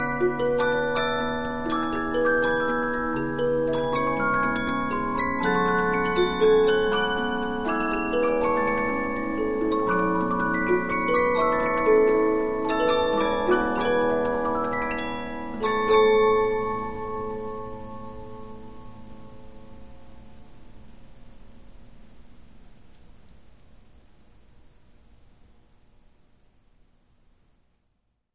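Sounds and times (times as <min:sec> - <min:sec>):
Polyphon 15-inch disc music box playing: 0:00.0 - 0:19.0.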